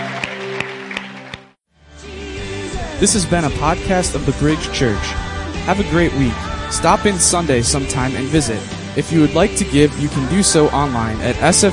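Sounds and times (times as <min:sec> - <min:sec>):
audience clapping: 0:00.0 - 0:01.6
speech: 0:03.0 - 0:11.7.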